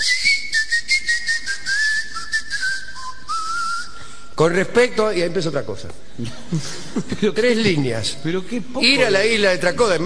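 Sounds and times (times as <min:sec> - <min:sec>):
island inhabitants whistling a wavering melodic line: 0:00.0 - 0:04.3
speech: 0:04.4 - 0:10.0
laughter: 0:06.2 - 0:09.4.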